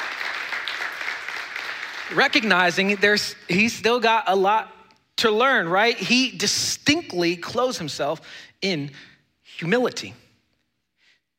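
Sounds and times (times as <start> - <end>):
crowd applauding: 0.0 - 3.3
speech: 2.1 - 10.2.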